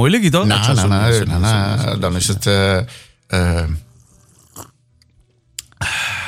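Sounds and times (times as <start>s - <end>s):
speech: 0.0s - 3.9s
loud slurp of coffee: 3.9s - 4.8s.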